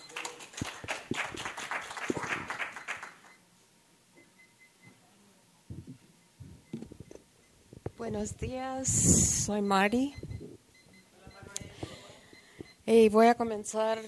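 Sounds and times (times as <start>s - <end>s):
audience applause: 0.0s - 3.4s
dull low thumps: 5.7s - 10.9s
speech: 8.1s - 10.2s, 12.9s - 14.0s.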